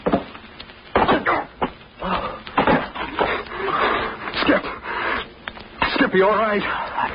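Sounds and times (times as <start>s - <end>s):
people falling through a hole in a wooden floor: 1.0s - 4.6s
speech: 6.2s - 7.1s.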